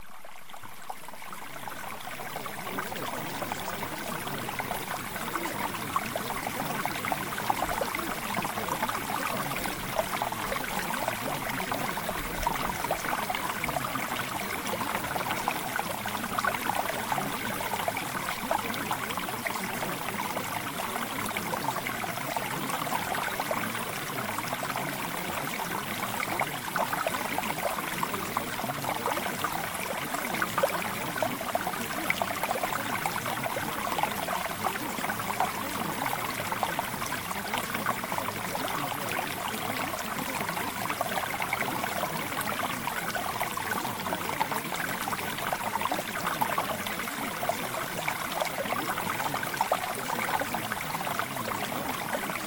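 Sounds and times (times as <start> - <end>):
mountain stream flowing: 0.0 - 52.4.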